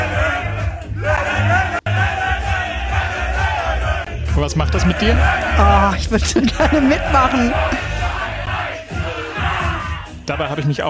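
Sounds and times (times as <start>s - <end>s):
Holstein Kiel football team cheering in locker room: 0.0s - 10.6s
speech: 4.5s - 7.8s, 10.3s - 10.8s
laughter: 4.8s - 8.3s.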